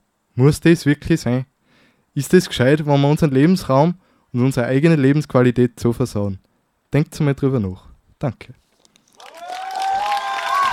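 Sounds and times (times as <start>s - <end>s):
speech: 0.4s - 1.5s, 2.2s - 8.6s
audience applause: 9.2s - 10.7s.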